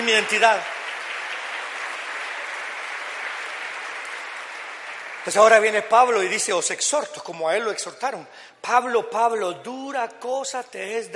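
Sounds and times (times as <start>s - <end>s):
audience applauding loudly: 0.0s - 6.7s
speech: 0.1s - 0.7s, 5.2s - 11.1s.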